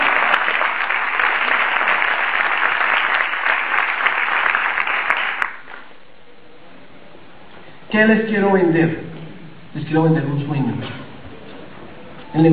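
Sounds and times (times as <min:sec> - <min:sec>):
audience applause: 0:00.0 - 0:05.9
speech: 0:08.0 - 0:09.1, 0:09.8 - 0:11.0, 0:12.3 - 0:12.5.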